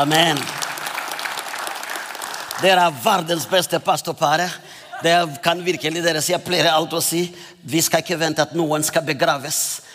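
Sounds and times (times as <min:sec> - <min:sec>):
speech: 0:00.0 - 0:00.6, 0:02.6 - 0:09.9
audience applause: 0:00.0 - 0:03.3.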